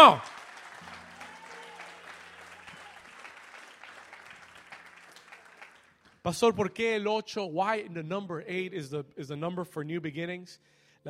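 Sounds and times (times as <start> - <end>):
speech: 0.0 - 0.3, 6.2 - 11.0
audience applause: 0.0 - 6.2.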